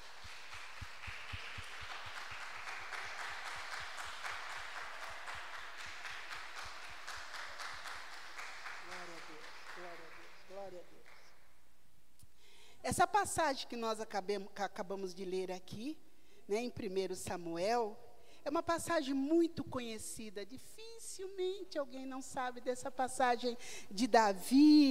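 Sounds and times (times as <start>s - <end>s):
audience clapping: 0.0s - 11.5s
speech: 13.0s - 24.9s.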